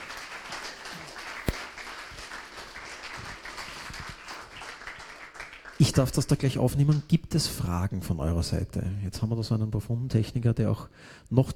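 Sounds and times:
audience applause: 0.0 - 6.1
speech: 5.8 - 11.5.

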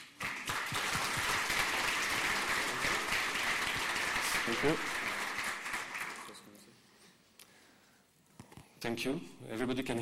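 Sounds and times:
crowd applause: 0.0 - 6.4
speech: 4.5 - 5.0, 8.8 - 9.9.

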